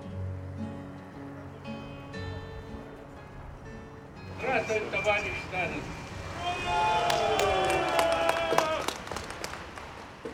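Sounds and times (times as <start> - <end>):
speech: 4.4 - 6.0, 6.7 - 7.3
gathered crowd cheering in an open square: 4.4 - 10.3
scattered claps: 7.0 - 10.3.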